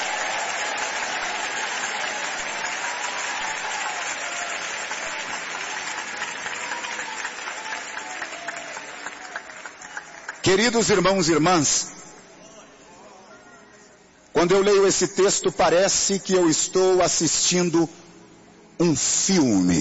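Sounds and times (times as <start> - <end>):
audience clapping: 0.0 - 11.4
speech: 10.5 - 11.9, 14.4 - 18.0, 18.8 - 19.8.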